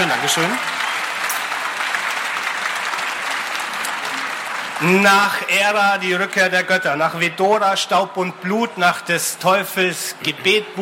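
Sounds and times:
speech: 0.0s - 0.7s, 4.8s - 10.8s
audience applause: 0.0s - 6.2s.

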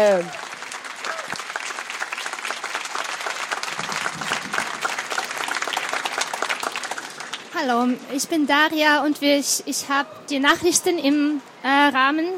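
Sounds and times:
speech: 0.0s - 0.4s, 7.6s - 12.3s
audience applause: 0.0s - 7.6s.

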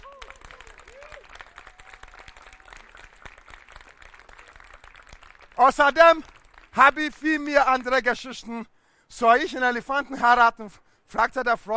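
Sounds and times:
audience applause: 0.0s - 6.8s
speech: 5.6s - 11.7s.

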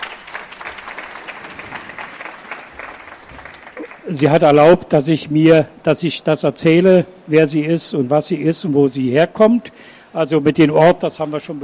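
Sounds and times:
audience applause: 0.0s - 4.2s
speech: 4.1s - 11.6s.

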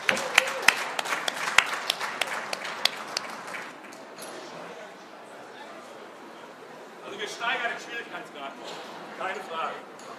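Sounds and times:
audience applause: 0.0s - 3.9s
speech: 7.4s - 9.9s.

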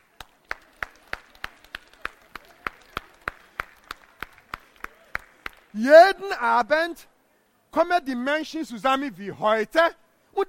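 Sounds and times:
slow sparse clapping at a spoken storytelling performance: 0.0s - 5.8s
speech: 5.7s - 7.1s, 7.7s - 10.4s.

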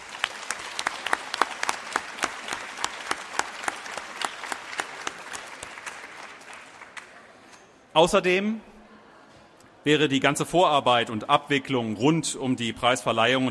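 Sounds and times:
audience applause: 0.0s - 7.4s
speech: 8.0s - 8.7s, 9.8s - 13.4s.

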